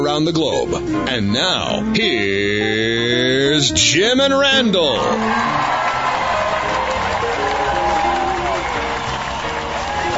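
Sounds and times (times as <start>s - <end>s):
speech: 0.0s - 5.8s
live studio crowd applauding: 4.8s - 10.1s
cheers and voices: 5.0s - 10.1s.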